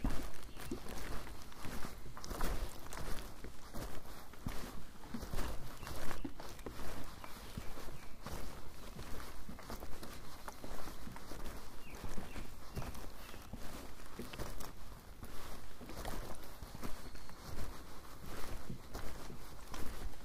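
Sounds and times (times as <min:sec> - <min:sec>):
footsteps crunching along a mountain trail on a summer evening: 0:00.0 - 0:20.2.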